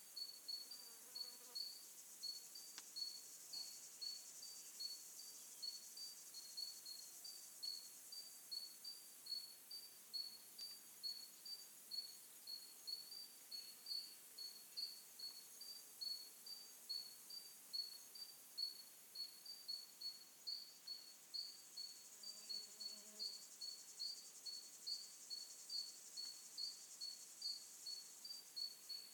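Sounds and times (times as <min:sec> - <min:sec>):
summer afternoon forest ambience in the Atlantic Forest: 0:00.0 - 0:29.1.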